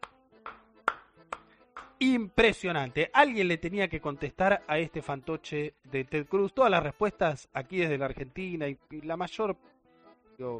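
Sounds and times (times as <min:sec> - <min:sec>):
person clapping: 0:00.0 - 0:02.0
speech: 0:02.0 - 0:09.7, 0:10.4 - 0:10.5.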